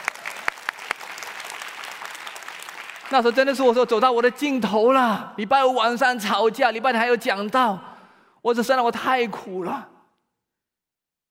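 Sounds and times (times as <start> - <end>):
audience applause: 0.0 - 3.7
speech: 3.1 - 9.9.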